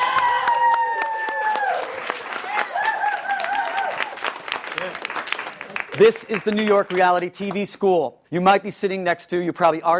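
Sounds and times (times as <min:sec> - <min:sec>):
audience whoops and voices: 0:00.0 - 0:04.1
audience at a welcome session clapping: 0:00.0 - 0:07.9
speech: 0:06.0 - 0:09.9.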